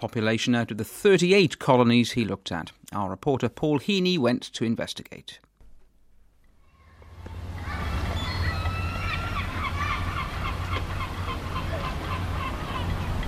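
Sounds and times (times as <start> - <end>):
speech: 0.0 - 5.5
seagulls calling: 6.6 - 13.2.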